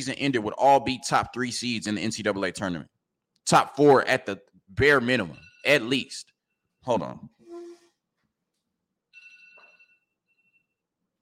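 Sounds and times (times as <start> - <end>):
speech: 0.0 - 7.4
phone alarm ringing: 9.2 - 10.8.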